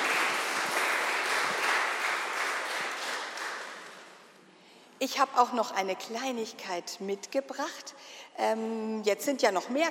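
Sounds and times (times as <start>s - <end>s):
audience applause: 0.0s - 4.2s
speech: 5.0s - 9.8s.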